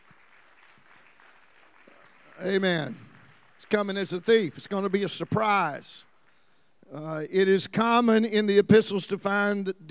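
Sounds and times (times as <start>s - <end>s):
audience clapping: 0.0s - 6.5s
speech: 2.4s - 3.0s, 3.6s - 6.1s, 6.9s - 9.9s.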